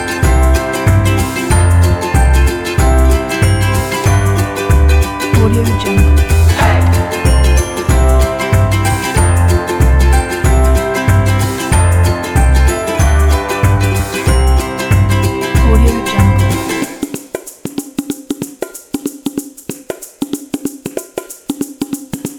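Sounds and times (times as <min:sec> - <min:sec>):
upbeat charming music: 0:00.0 - 0:17.6.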